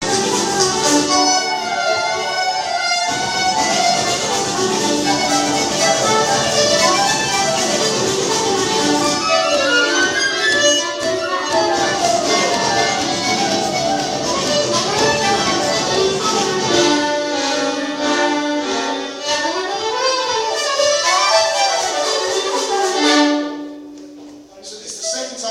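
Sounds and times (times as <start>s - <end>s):
traditional music rehearsal: 0.0s - 25.4s.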